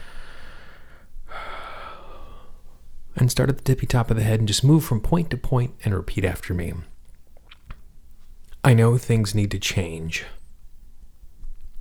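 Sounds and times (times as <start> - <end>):
nice big deep breath inhale: 0.0 - 2.9
speech: 3.2 - 6.9, 8.6 - 10.4.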